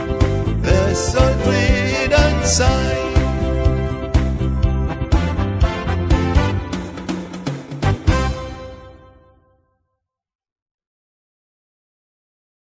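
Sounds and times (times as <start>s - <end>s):
christmas song: 0.0s - 9.4s.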